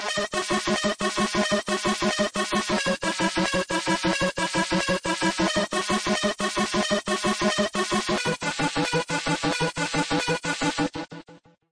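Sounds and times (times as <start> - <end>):
synth: 0.0 - 11.2.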